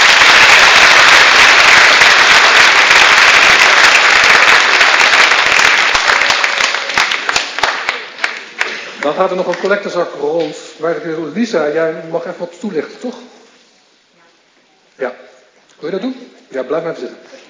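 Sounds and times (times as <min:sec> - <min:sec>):
audience applause: 0:00.0 - 0:09.7
speech: 0:09.2 - 0:13.3, 0:15.0 - 0:17.4.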